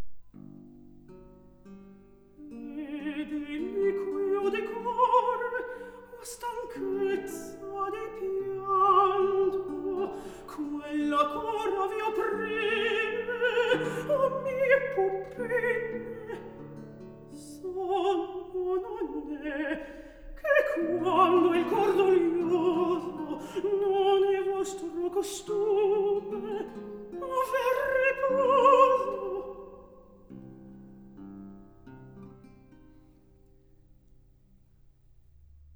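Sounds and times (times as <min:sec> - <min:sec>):
recitative singing: 0:02.4 - 0:30.1.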